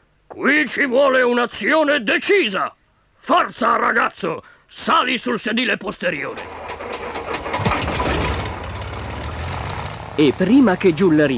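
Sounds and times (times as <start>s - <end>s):
speech: 0.4s - 6.6s, 10.2s - 11.3s
airplane engine before takeoff: 6.4s - 11.3s.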